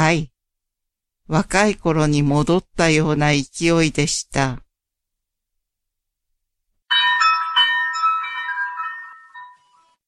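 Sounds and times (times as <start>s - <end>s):
speech: 0.1s - 0.3s, 1.3s - 4.6s
cowbell hanging on a door clanging as someone enters: 6.9s - 9.9s.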